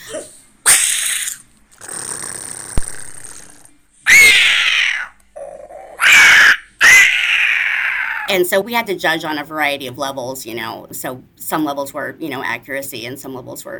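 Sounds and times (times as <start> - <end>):
person imitating a dinosaur with shrieks and hisses: 0.0 - 8.3
speech: 8.4 - 13.7.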